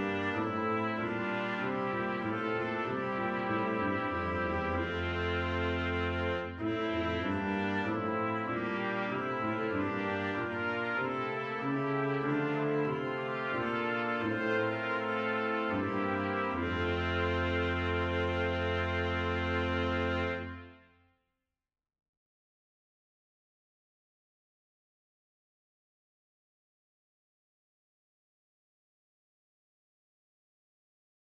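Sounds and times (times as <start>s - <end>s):
brass quintet: 0.0s - 21.1s.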